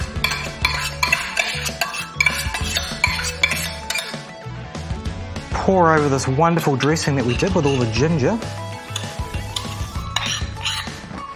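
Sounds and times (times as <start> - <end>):
spooning cooked quinoa into salad bowl: 0.0 - 4.2, 8.8 - 11.0
speech: 5.7 - 8.6.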